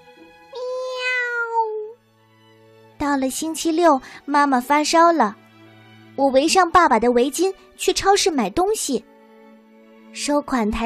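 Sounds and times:
cat meowing: 0.6s - 2.0s
speech: 3.1s - 5.4s, 6.2s - 9.1s, 10.2s - 10.8s.

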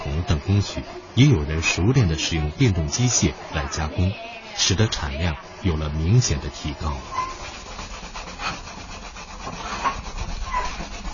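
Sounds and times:
speech: 0.5s - 7.4s
sanding a fan by hand with scouring rush: 6.0s - 11.1s.

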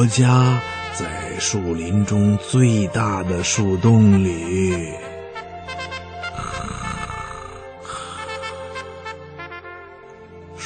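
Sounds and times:
speech: 0.0s - 5.0s
snoring over the phone: 6.3s - 8.6s.

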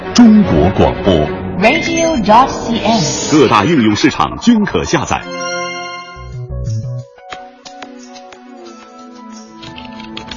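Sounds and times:
speech: 0.2s - 5.5s
sustained musical tones: 0.7s - 7.1s
typing on a computer keyboard: 7.8s - 10.3s.

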